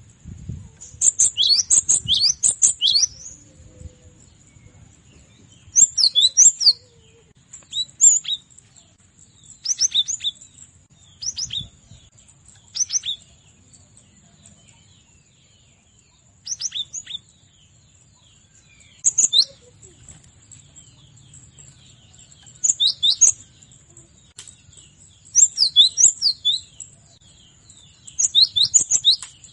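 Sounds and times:
cinereous tit chirping song: 0.8 - 4.8, 5.6 - 8.5, 9.4 - 13.6, 18.2 - 29.5.

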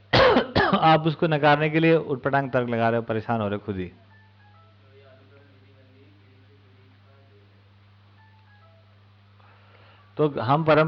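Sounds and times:
steady low hum: 0.0 - 10.8
speech: 0.8 - 4.0, 10.2 - 10.8
faint murmur: 4.0 - 9.6
mobile phone ringing with a repeating electronic melody: 4.1 - 4.9, 8.1 - 9.1.

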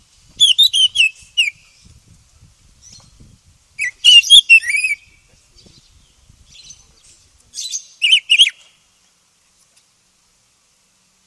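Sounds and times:
Oriental magpie-robin song: 0.4 - 2.0, 2.8 - 8.8.

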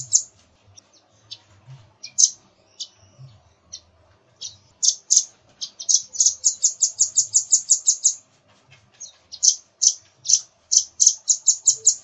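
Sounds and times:
nuthatch calling in quick high sharp notes: 0.0 - 0.3, 2.0 - 8.2, 9.0 - 12.0.

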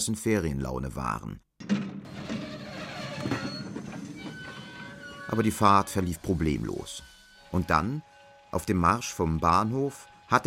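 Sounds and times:
speech: 0.0 - 1.8, 5.3 - 10.4
thin tonal whine: 2.5 - 10.4
train rolling along the tracks in summery weather: 3.4 - 7.8.

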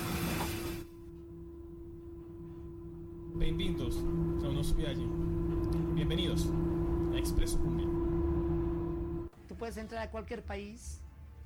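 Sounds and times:
sustained low hum: 0.6 - 9.3
speech: 3.4 - 8.1, 9.6 - 11.0
train rolling along the rails: 3.4 - 9.3.

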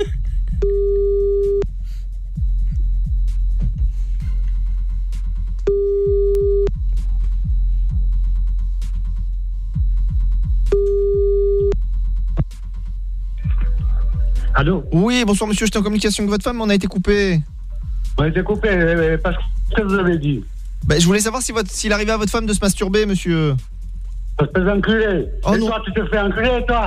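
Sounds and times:
low rumbling background: 0.0 - 26.8
telephone ringback tone beeps while redialing: 0.6 - 1.7, 5.7 - 6.7, 10.7 - 11.8
speech: 14.6 - 17.5, 18.2 - 23.7, 24.4 - 26.8.

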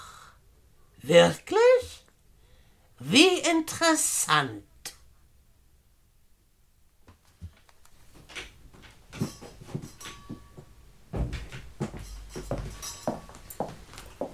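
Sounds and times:
speech: 1.0 - 1.6, 3.0 - 4.7
handling noise: 7.1 - 14.3
glasses being set out: 9.2 - 10.7, 11.8 - 14.0
glass ringing chime: 9.2 - 10.8, 12.0 - 13.8.

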